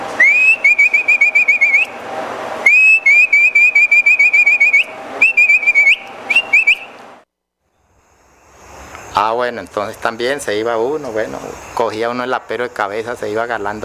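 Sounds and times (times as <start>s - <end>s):
human herding whistle for driving pack animals: 0.2s - 2.0s, 2.6s - 7.0s
speech: 9.4s - 13.8s.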